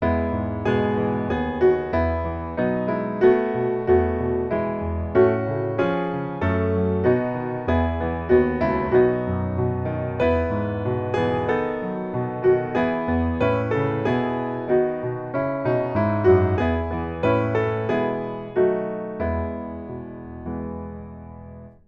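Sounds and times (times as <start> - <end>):
piano: 0.0 - 21.8.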